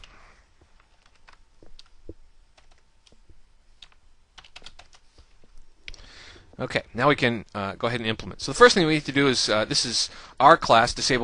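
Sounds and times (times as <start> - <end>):
typing code on a computer keyboard: 0.8 - 2.0, 2.6 - 2.8, 3.8 - 5.0
speech: 6.6 - 11.2.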